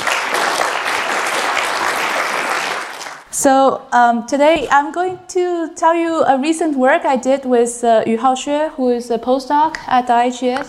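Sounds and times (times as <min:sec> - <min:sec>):
audience applause: 0:00.0 - 0:03.3
speech: 0:03.4 - 0:10.6.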